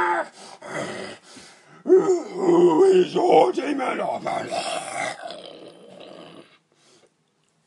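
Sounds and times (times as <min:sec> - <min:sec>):
voice imitating a growl: 0:00.0 - 0:01.2, 0:01.8 - 0:06.6
speech: 0:02.9 - 0:05.1.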